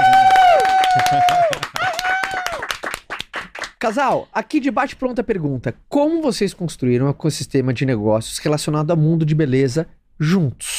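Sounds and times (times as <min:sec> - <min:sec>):
audience applause: 0:00.0 - 0:03.8
speech: 0:03.8 - 0:10.7.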